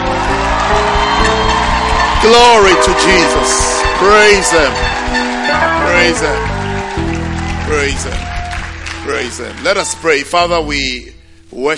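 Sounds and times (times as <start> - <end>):
scattered whoops and shouts of cheering: 0.0 - 10.3
audience applause: 0.0 - 10.4
speech: 2.2 - 6.6, 7.7 - 8.3, 9.0 - 11.7.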